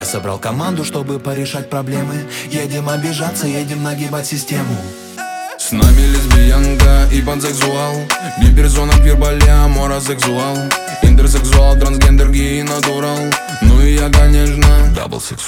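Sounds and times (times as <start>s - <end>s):
phone ringtone or alarm clock tone: 2.9s - 14.8s.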